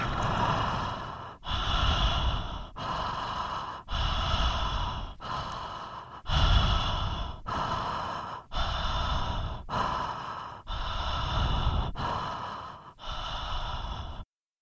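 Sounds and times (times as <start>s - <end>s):
continuous connected breathing with no pause between in and out breath: 0.0s - 14.3s.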